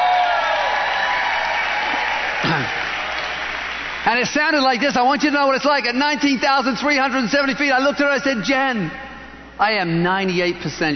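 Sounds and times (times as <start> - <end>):
audience applause: 0.0 - 4.8
speech: 4.1 - 9.0, 9.6 - 10.9.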